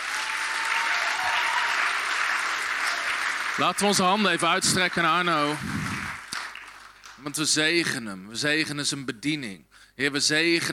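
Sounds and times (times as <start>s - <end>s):
large audience applause: 0.0s - 7.2s
speech: 3.6s - 5.9s, 7.2s - 10.7s.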